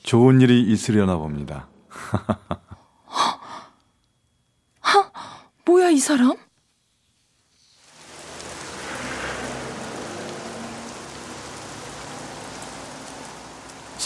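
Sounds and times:
speech: 0:00.1 - 0:02.6, 0:05.7 - 0:06.5
laughter: 0:01.9 - 0:02.8
steady rain falling: 0:07.2 - 0:14.0.

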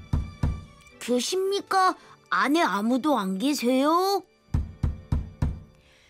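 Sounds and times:
knocking on a door: 0:00.0 - 0:00.7, 0:04.5 - 0:05.7
speech: 0:01.0 - 0:04.3.

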